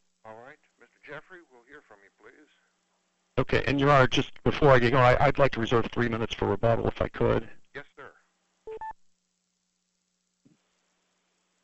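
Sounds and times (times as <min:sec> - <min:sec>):
speech: 0:03.4 - 0:07.6
conference call join beep: 0:08.7 - 0:09.0.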